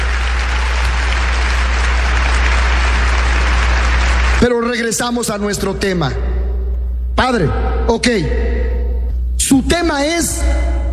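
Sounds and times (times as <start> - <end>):
audience applause: 0.0 - 4.4
low hum: 0.0 - 10.9
speech: 4.7 - 6.3, 7.2 - 8.5, 9.5 - 10.7.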